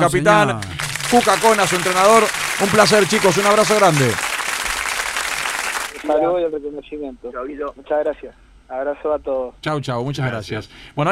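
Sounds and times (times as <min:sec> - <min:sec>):
speech: 0:00.0 - 0:04.3, 0:06.0 - 0:11.1
applause for the Mendoza champions: 0:00.6 - 0:06.2.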